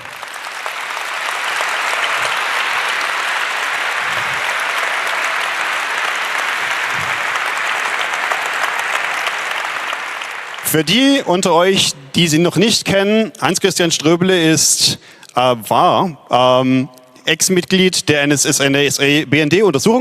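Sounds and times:
audience applause: 0.0 - 11.9
speech: 10.7 - 20.0.

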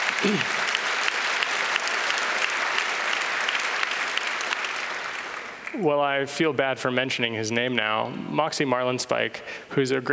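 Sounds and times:
audience applause: 0.0 - 5.8
speech: 0.2 - 0.7, 5.8 - 10.1.

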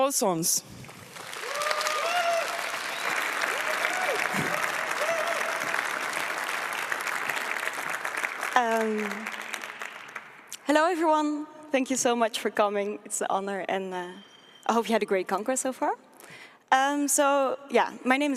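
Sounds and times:
speech: 0.1 - 0.9, 8.6 - 9.4, 10.7 - 16.1, 16.7 - 18.3
audience applause: 0.8 - 10.6.

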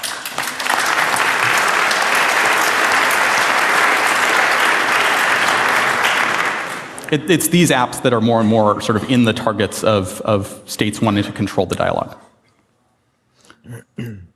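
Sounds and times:
crowd applause: 0.0 - 7.3
speech: 7.1 - 12.2, 13.6 - 14.3.

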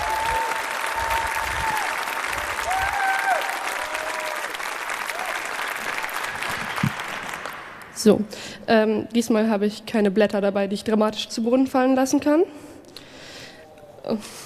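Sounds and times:
audience applause: 0.0 - 8.0
speech: 8.0 - 12.6, 14.1 - 14.4.

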